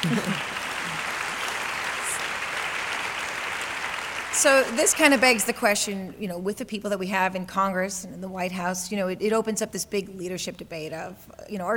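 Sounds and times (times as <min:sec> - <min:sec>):
speech: 0:00.0 - 0:00.4, 0:04.4 - 0:11.7
laughter: 0:00.0 - 0:01.1
audience applause: 0:00.0 - 0:05.7.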